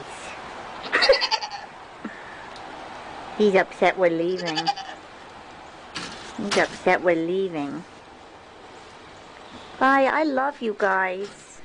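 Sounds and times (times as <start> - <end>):
goat bleating: 0.8 - 1.7, 4.3 - 5.0
speech: 3.4 - 4.9, 6.4 - 7.9, 9.8 - 11.4.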